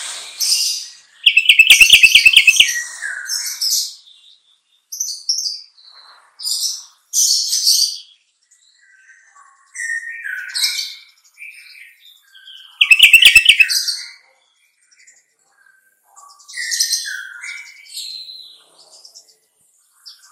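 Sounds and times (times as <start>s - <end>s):
sooty-headed bulbul singing: 1.2s - 2.8s, 12.8s - 13.8s.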